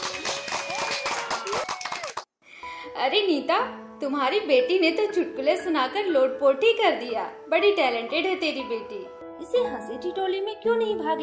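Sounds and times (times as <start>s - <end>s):
children clapping: 0.0s - 2.3s
speech: 3.0s - 11.2s.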